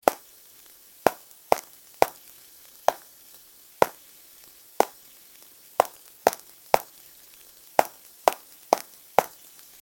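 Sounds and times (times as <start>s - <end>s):
Roblox animated character walking: 1.0s - 3.1s, 3.8s - 4.0s, 4.8s - 5.1s, 5.8s - 9.8s.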